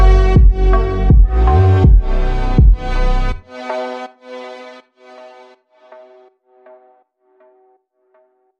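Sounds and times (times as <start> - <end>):
slowed reverb music: 0.0 - 4.1.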